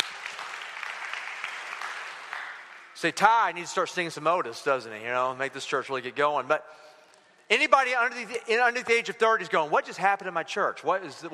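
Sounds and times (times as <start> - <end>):
church congregation giving a round of applause: 0.0 - 4.0
speech: 3.0 - 6.9, 7.5 - 11.3.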